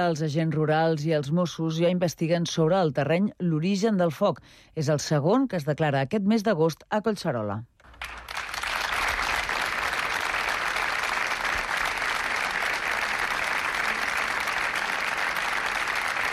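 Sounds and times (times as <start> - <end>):
speech: 0.0 - 8.2
applause after a minute of silence: 7.8 - 16.3.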